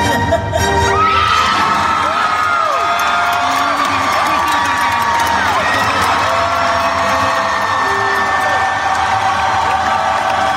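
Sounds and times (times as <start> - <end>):
crowd cheering at D23: 0.9 - 10.5.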